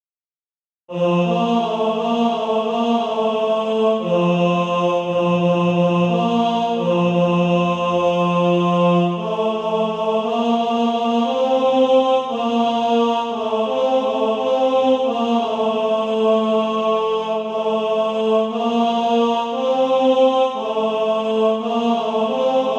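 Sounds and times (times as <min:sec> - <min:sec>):
tenor SATB practice part: 0:00.9 - 0:22.7.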